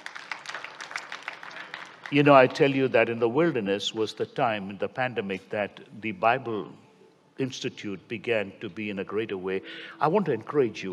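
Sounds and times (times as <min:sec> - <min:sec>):
audience clapping: 0:00.0 - 0:02.8
speech: 0:02.1 - 0:06.8, 0:07.4 - 0:10.9.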